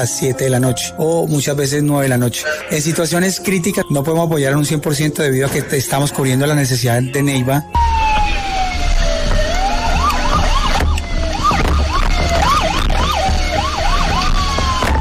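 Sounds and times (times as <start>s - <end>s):
speech: 0.0s - 8.0s
fire station wailing alarm siren: 2.4s - 5.1s, 7.7s - 15.0s.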